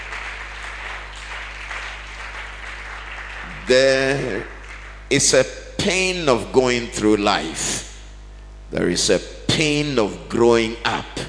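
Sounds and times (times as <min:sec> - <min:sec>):
audience clapping: 0:00.0 - 0:05.3
speech: 0:03.7 - 0:07.9, 0:08.7 - 0:11.2.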